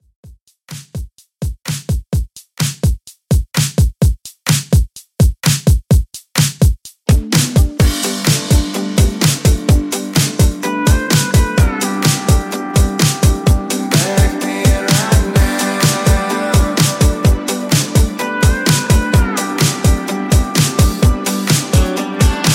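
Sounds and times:
country drum beat: 0.1 - 22.5.

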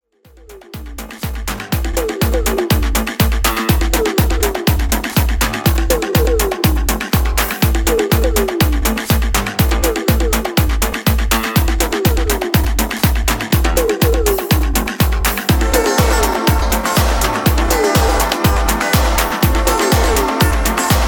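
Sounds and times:
classic music mix: 0.1 - 21.0.

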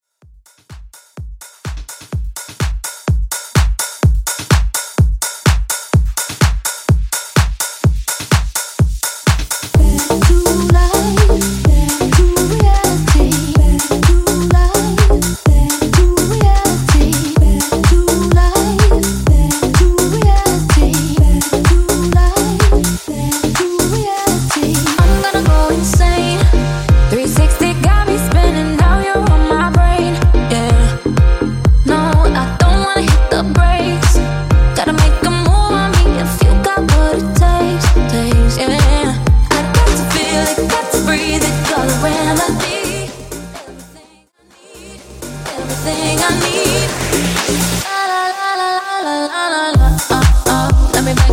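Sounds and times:
deep house music: 0.3 - 49.1, 49.8 - 51.3.

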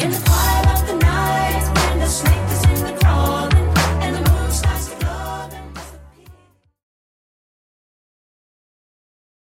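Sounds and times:
clean 80s Redrum drum machine beat at 120 bpm: 0.0 - 6.0.

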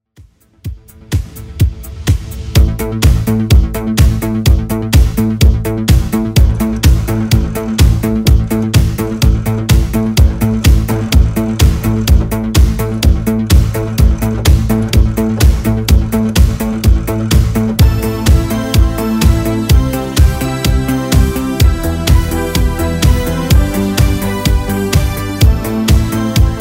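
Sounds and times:
80s music at 126 bpm: 0.1 - 26.6.

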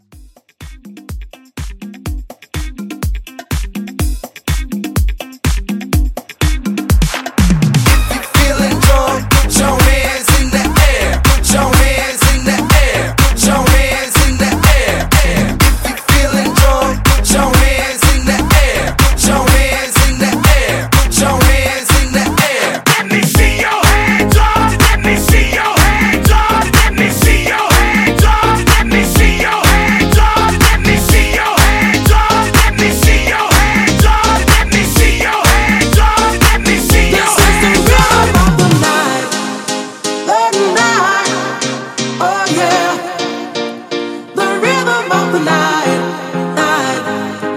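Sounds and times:
club disco music at 124 BPM: 0.0 - 47.5.

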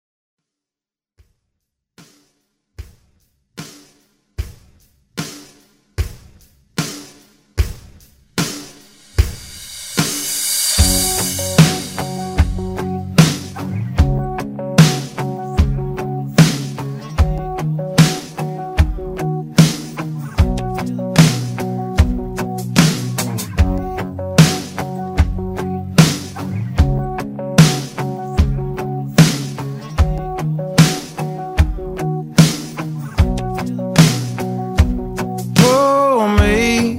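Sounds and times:
country music: 10.8 - 36.9.

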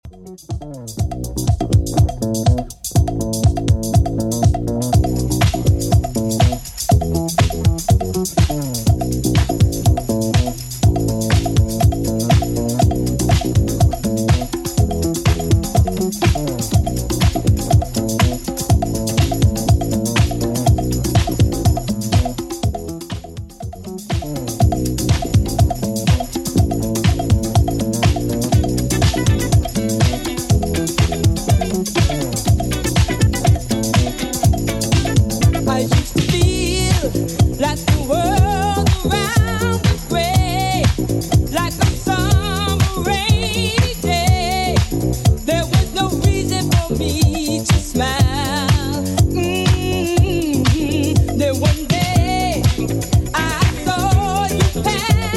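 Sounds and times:
80s drum machine beat: 0.0 - 55.3.

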